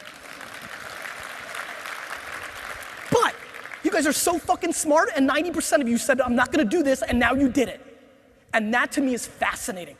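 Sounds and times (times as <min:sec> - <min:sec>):
audience applauding: 0:00.0 - 0:04.4
speech: 0:03.9 - 0:07.9, 0:08.5 - 0:09.9.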